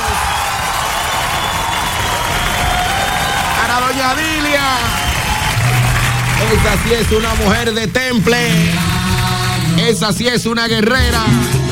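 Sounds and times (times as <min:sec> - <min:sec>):
applause: 0:00.0 - 0:11.2
speech: 0:04.0 - 0:05.0, 0:06.4 - 0:08.9, 0:09.8 - 0:11.6.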